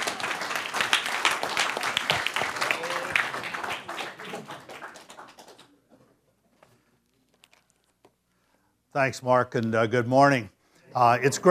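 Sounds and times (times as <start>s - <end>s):
audience applause welcoming a speaker: 0.0s - 5.8s
speech: 9.0s - 11.4s.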